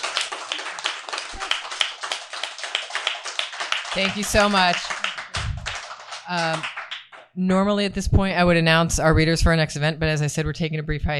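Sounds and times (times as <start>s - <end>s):
audience applause: 0.0s - 7.2s
speech: 3.9s - 4.9s, 6.3s - 6.7s, 7.4s - 11.1s.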